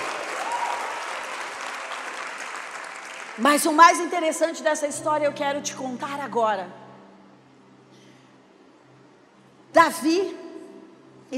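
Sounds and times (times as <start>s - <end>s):
audience applause: 0.0s - 3.5s
speech: 3.4s - 6.8s, 9.8s - 10.4s.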